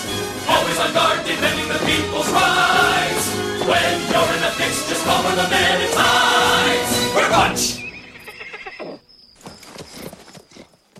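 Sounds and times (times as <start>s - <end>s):
horse hooves clip-clopping in a forest at night: 0.0s - 6.6s, 8.2s - 10.9s
speech: 3.7s - 7.8s
horse whinnying: 7.7s - 9.1s.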